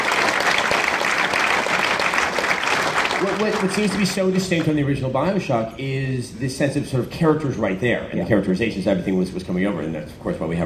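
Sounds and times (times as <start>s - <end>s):
audience applause: 0.0s - 4.7s
speech: 3.2s - 10.6s.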